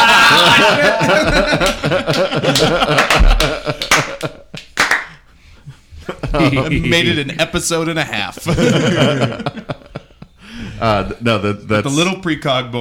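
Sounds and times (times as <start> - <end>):
laughter: 0.0 - 11.2
person clapping: 1.2 - 5.2
speech: 6.5 - 9.7, 10.8 - 12.7.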